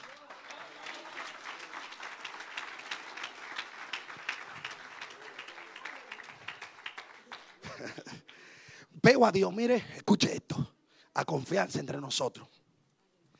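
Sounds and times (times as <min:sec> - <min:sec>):
audience applauding: 0:00.0 - 0:08.4
laughter: 0:07.5 - 0:08.3
speech: 0:09.1 - 0:10.6, 0:11.2 - 0:12.6.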